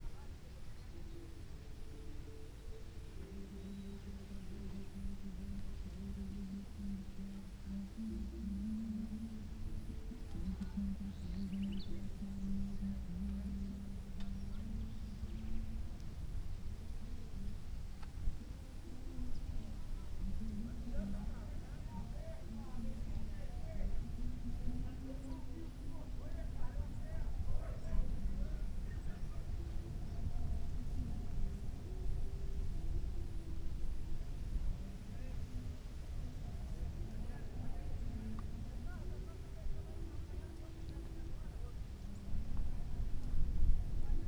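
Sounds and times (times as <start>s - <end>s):
distant people: 0.0s - 44.2s
light wind in ruins: 0.0s - 44.2s
music: 0.0s - 44.2s.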